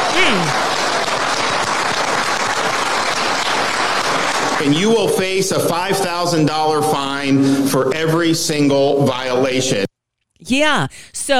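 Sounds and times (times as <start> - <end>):
crowd applauding in a played recording: 0.0 - 7.2
voice calling out: 0.1 - 0.5
speech: 4.6 - 11.3.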